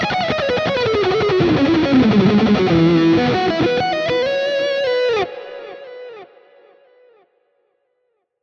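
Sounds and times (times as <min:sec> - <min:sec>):
ESP LTD TE 1000 electric guitar lead: 0:00.0 - 0:06.7.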